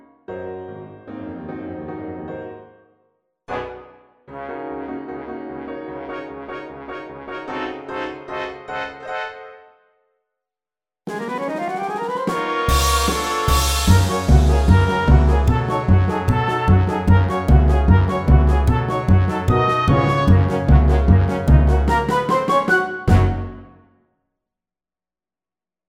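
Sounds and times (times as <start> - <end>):
orchestra: 3.5 - 9.5, 11.1 - 23.8.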